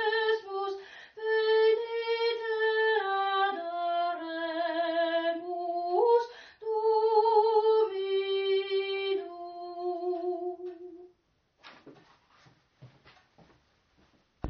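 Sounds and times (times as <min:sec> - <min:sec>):
soprano singing: 0:00.0 - 0:11.1.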